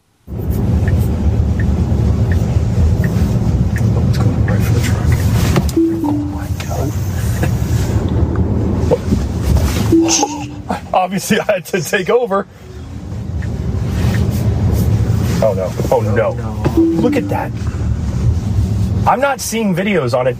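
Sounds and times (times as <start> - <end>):
road and wind noise from a Tesla car driving: 0.2 - 20.3
thin tone: 5.8 - 6.8, 10.0 - 10.8, 16.8 - 18.0
speech: 11.1 - 12.7, 15.4 - 17.8, 19.1 - 20.3.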